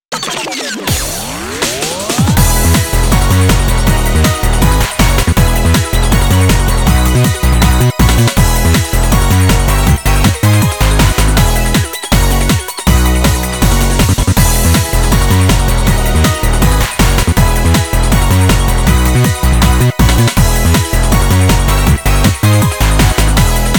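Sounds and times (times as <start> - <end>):
off vocal instrumental music: 0.9 - 23.7.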